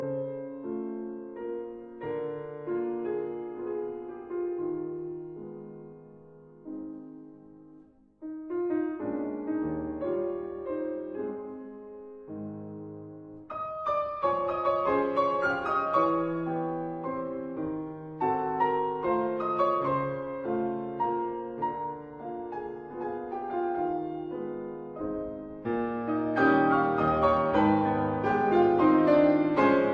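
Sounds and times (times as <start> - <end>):
waltz in A flat major: 0.0 - 29.9.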